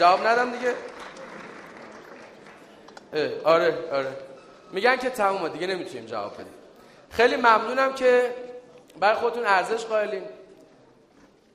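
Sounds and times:
speech: 0:00.0 - 0:01.0, 0:03.1 - 0:10.4
audience applauding at a talk: 0:00.0 - 0:03.1.

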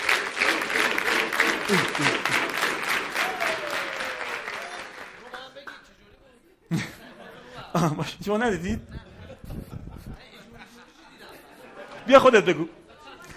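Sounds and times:
audience applause: 0:00.0 - 0:05.8
single sharp clap-like burst: 0:00.0 - 0:05.9
people chuckling: 0:01.1 - 0:02.9, 0:06.7 - 0:08.0, 0:08.7 - 0:13.3
speech: 0:01.7 - 0:02.5, 0:07.8 - 0:09.0, 0:12.1 - 0:12.8.

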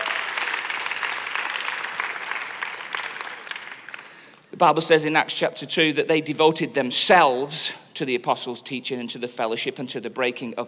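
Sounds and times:
audience applause: 0:00.0 - 0:04.2
speech: 0:04.6 - 0:10.6.

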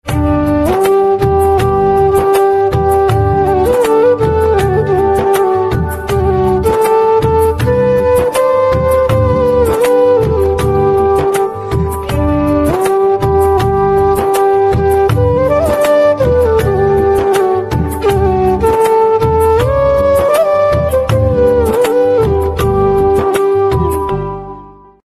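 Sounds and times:
flute: 0:00.0 - 0:25.0.

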